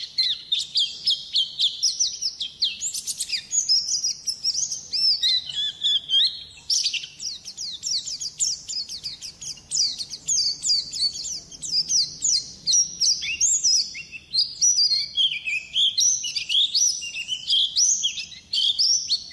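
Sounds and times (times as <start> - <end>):
bird song with chirps, trills and whistled notes: 0.0 - 19.3.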